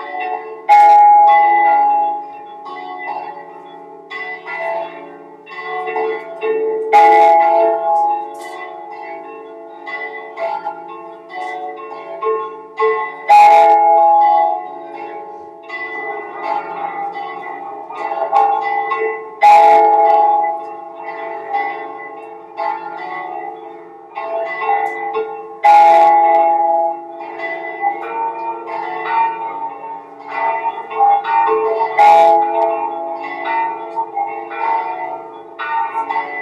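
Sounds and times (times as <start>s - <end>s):
bells ringing: 0.0s - 36.4s.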